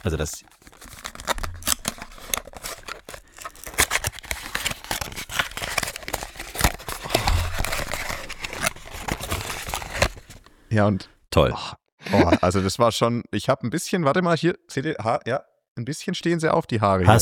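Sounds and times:
speech: 0.0s - 0.7s, 10.7s - 17.2s
package being unpacked at the microphone: 0.0s - 10.5s.

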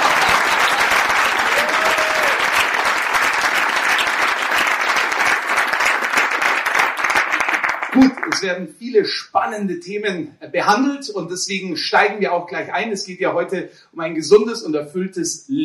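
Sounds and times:
crowd applause: 0.0s - 8.4s
faint cheer or whistle: 1.4s - 2.6s
speech: 8.0s - 15.6s.

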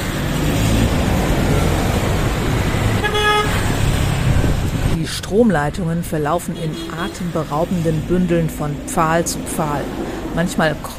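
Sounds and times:
street traffic roar with engine rumble: 0.0s - 10.9s
car horn honk: 2.9s - 3.8s, 6.6s - 7.3s
speech: 5.4s - 10.9s.

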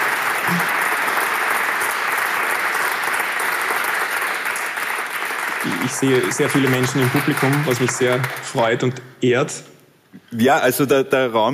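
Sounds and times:
audience applause: 0.0s - 9.0s
speech: 5.9s - 9.7s, 10.3s - 11.5s.

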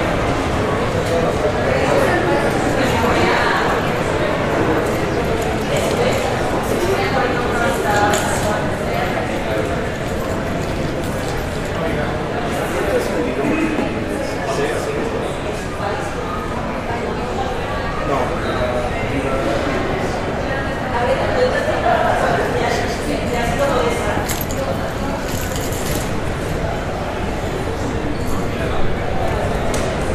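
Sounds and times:
murmur of many voices in an airport terminal hall: 0.0s - 30.1s
small clatters: 24.2s - 26.2s.

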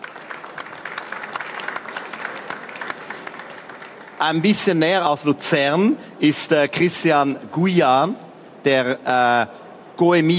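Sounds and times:
audience applause: 0.0s - 4.7s
speech: 4.2s - 10.3s.

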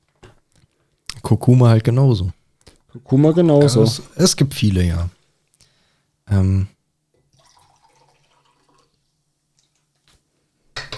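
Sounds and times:
speech: 1.3s - 5.2s, 6.3s - 6.7s
water being poured: 7.3s - 10.1s.

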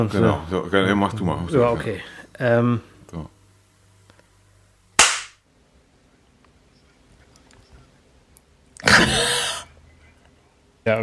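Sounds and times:
speech: 0.0s - 3.3s
hand clap for microphone sync: 5.0s - 5.4s.

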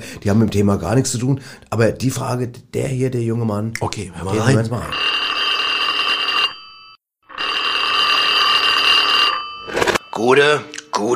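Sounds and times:
speech: 0.1s - 5.2s, 10.2s - 11.1s
telephone bell ringing before answering machine: 4.4s - 10.7s.

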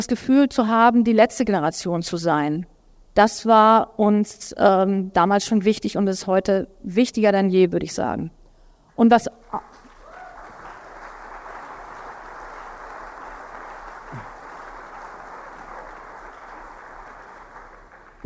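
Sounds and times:
speech: 0.0s - 8.4s, 9.0s - 9.8s
audience applause: 9.7s - 18.2s.

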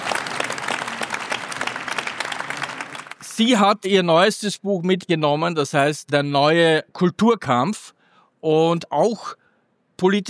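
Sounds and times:
audience applause: 0.0s - 3.3s
speech: 3.4s - 9.4s, 10.0s - 10.2s.

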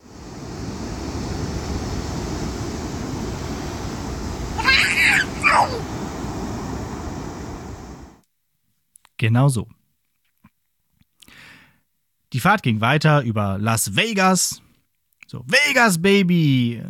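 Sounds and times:
Pacific Ocean water washing around wading feet: 0.0s - 8.2s
high-pitched vocal squeals: 4.6s - 5.9s
speech: 5.5s - 6.0s, 9.2s - 9.8s, 12.3s - 14.6s, 15.3s - 16.8s.

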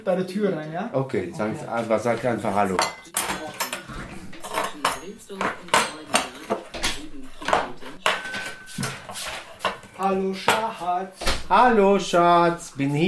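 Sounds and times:
speech: 0.0s - 3.6s, 5.2s - 5.6s, 10.1s - 13.0s
table being set with dishes and cutlery: 1.7s - 11.7s.

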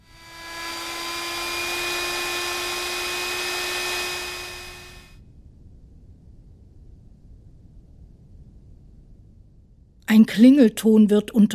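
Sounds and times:
gas rushing from a nozzle: 0.0s - 5.1s
speech: 10.1s - 11.5s.

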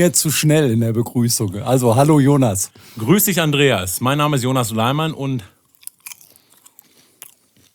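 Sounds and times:
speech: 0.0s - 5.6s
chewing popcorn with a full mouth: 5.6s - 7.7s.

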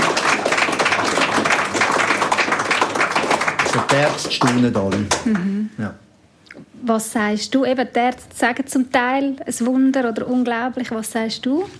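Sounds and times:
small group clapping: 0.0s - 5.6s
speech: 3.8s - 6.0s, 6.8s - 11.7s.

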